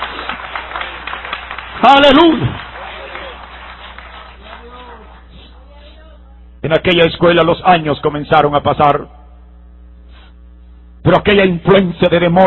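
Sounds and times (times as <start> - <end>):
applause: 0.0 - 5.6
speech: 1.8 - 2.6, 6.7 - 9.2, 11.0 - 12.4.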